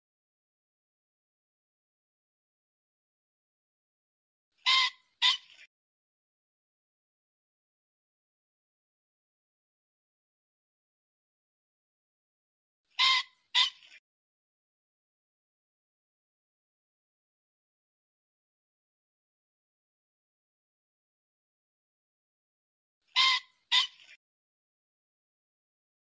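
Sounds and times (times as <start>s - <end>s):
pheasant squawking: 4.6s - 5.7s, 13.0s - 14.0s, 23.1s - 24.2s.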